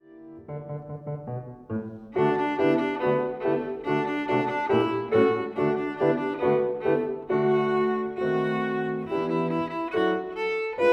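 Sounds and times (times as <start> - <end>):
violin: 0.0 - 10.9.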